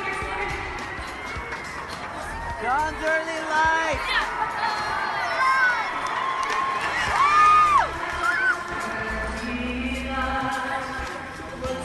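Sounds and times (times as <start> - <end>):
crowd cheering and shouting: 0.1 - 9.6
large concert crowd singing along: 7.8 - 11.8.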